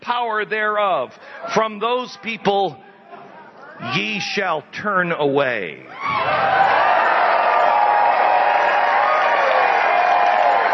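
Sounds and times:
speech: 0:00.1 - 0:02.9, 0:03.8 - 0:06.6
crowd cheering: 0:05.9 - 0:10.7.

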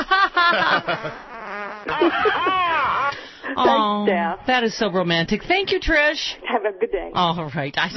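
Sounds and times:
laughter: 0:00.0 - 0:03.9
speech: 0:00.6 - 0:02.9, 0:03.5 - 0:07.9
fart sound effect: 0:00.6 - 0:03.2.

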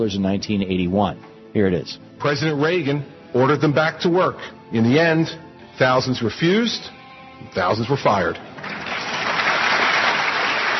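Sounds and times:
speech: 0:00.0 - 0:08.8
crowd at a political rally cheering and applauding: 0:08.6 - 0:10.7.

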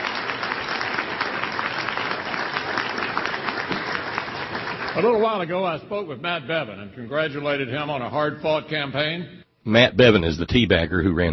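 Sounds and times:
audience clapping: 0:00.0 - 0:05.6
speech: 0:05.0 - 0:11.3.

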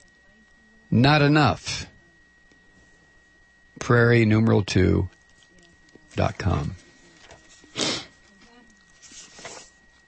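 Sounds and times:
speech: 0:00.9 - 0:01.7, 0:03.9 - 0:05.2, 0:06.2 - 0:06.8
sniffing: 0:07.6 - 0:08.2.

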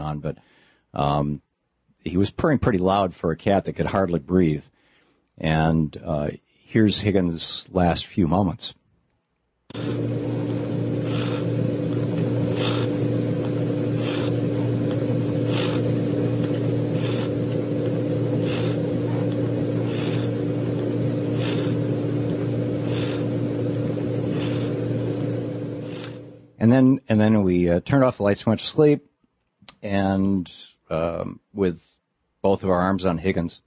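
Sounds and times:
speech: 0:00.1 - 0:04.8, 0:05.4 - 0:08.8, 0:09.7 - 0:10.8, 0:26.6 - 0:29.1, 0:29.8 - 0:33.6
room fan running: 0:09.7 - 0:26.8.

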